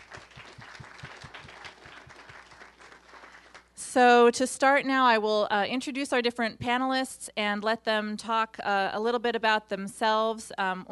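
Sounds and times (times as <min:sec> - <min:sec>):
audience applause: 0:00.0 - 0:03.7
speech: 0:03.9 - 0:10.8.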